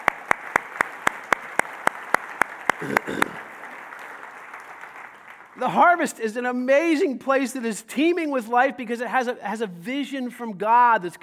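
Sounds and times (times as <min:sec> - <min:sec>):
audience applause: 0:00.0 - 0:05.7
speech: 0:02.8 - 0:03.5, 0:05.6 - 0:11.2.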